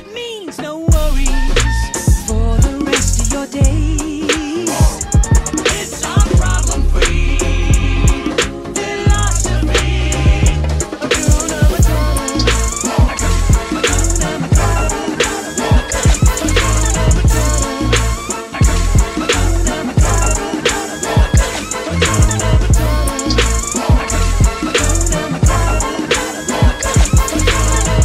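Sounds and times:
trap beat: 0:00.9 - 0:28.0.

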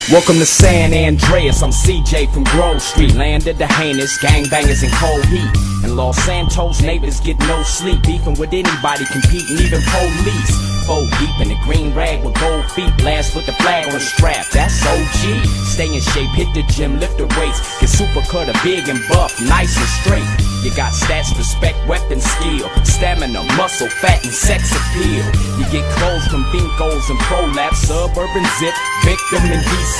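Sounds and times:
rap music: 0:00.0 - 0:29.9.

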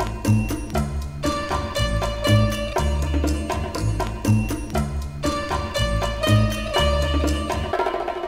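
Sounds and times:
bongo drums: 0:00.0 - 0:08.2.

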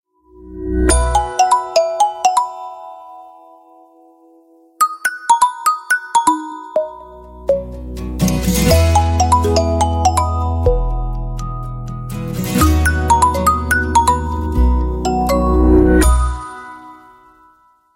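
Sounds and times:
ringtone: 0:00.9 - 0:03.4, 0:04.8 - 0:07.8, 0:08.7 - 0:11.0, 0:12.6 - 0:17.6.

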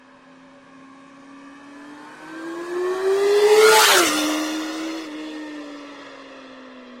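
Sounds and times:
Yamaha YZF-R6 motorcycle engine: 0:01.4 - 0:06.7.

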